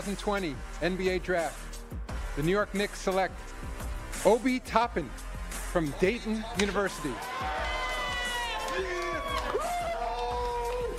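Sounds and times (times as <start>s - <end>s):
speech: 0.0s - 7.8s
round of applause and cheering: 6.8s - 10.9s.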